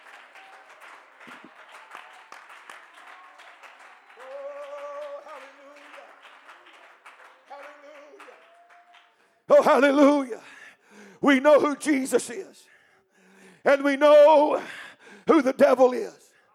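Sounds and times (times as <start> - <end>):
audience clapping hands: 0.0 - 10.3
speech: 9.6 - 10.5, 11.2 - 12.7, 13.7 - 16.2.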